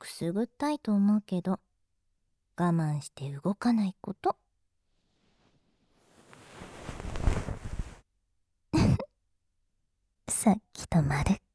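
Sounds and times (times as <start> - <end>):
speech: 0.2 - 1.7, 2.6 - 4.4, 10.4 - 11.4
bonten fluffy ear pick brushing inside the ear: 6.1 - 8.0.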